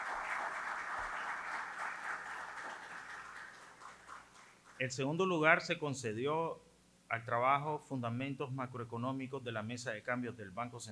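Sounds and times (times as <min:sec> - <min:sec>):
audience applause for award winners: 0:00.0 - 0:04.8
speech: 0:04.8 - 0:10.9.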